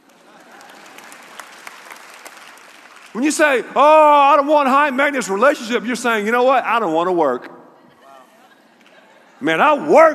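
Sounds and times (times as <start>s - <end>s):
audience applause: 0.0s - 3.4s
speech: 3.1s - 7.6s, 9.4s - 10.1s
laughter: 7.8s - 9.9s.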